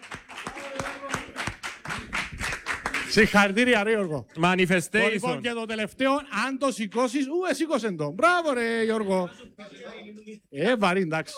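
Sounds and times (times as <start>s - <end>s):
overlapping voices: 0.0s - 3.7s
small group clapping for a man who won a draw: 0.0s - 3.8s
speech: 3.1s - 11.3s.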